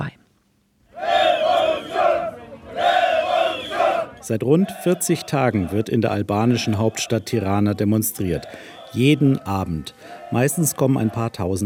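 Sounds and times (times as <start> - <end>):
protest crowd chanting at demonstration: 0.9 - 11.6
speech: 4.3 - 11.6.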